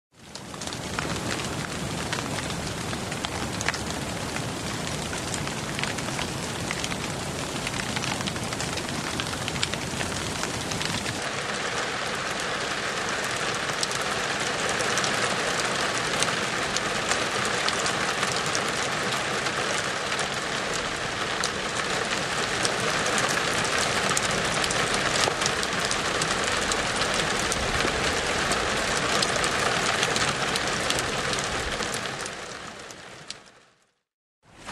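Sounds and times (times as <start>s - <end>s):
water: 0.1s - 33.8s, 34.4s - 34.6s.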